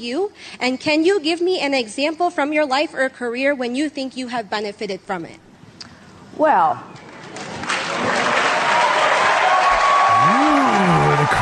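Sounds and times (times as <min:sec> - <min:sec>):
speech: 0:00.0 - 0:05.5, 0:06.4 - 0:07.1
crowd cheering and applauding: 0:07.5 - 0:11.4
whooping: 0:08.1 - 0:11.4.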